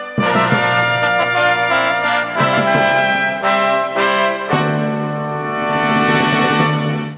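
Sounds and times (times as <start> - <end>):
ensemble playing: 0.2 - 7.1.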